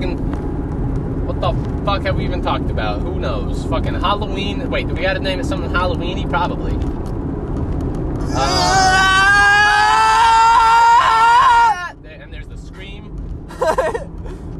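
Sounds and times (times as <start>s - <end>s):
low rumble: 0.0s - 10.7s, 11.9s - 14.5s
speech: 1.4s - 7.1s, 8.4s - 9.0s
voice imitating a scream: 8.2s - 12.0s.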